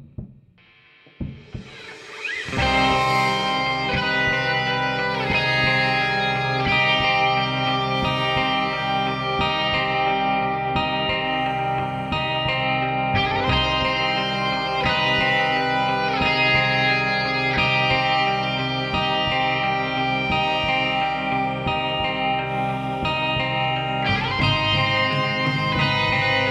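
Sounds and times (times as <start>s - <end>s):
guitar music mix: 1.1s - 26.5s.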